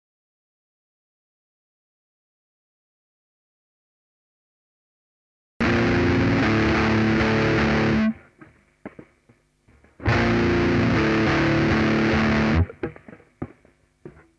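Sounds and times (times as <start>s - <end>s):
saturated guitar: 5.6s - 9.0s, 9.8s - 14.2s.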